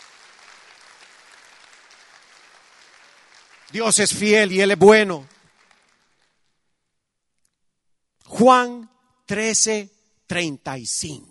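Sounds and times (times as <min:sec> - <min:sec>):
audience applause: 0:00.0 - 0:06.6
speech: 0:03.7 - 0:05.3, 0:08.4 - 0:11.2.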